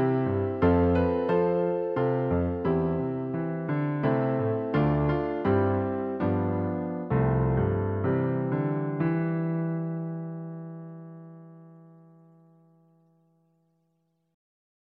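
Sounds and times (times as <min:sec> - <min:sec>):
instrumental backing track without melody: 0:00.0 - 0:11.9.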